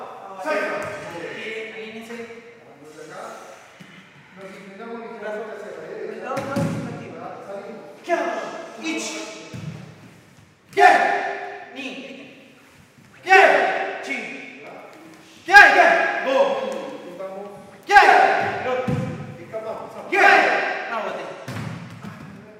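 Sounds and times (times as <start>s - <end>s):
indoor karate training: 0.0s - 1.7s, 8.0s - 22.5s.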